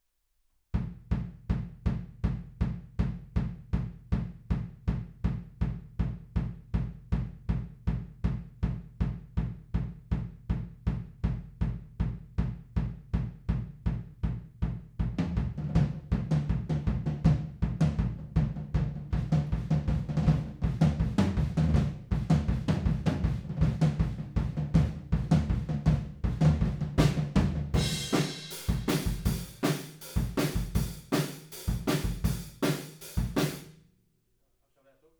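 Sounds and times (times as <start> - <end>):
music: 0.8 - 33.8.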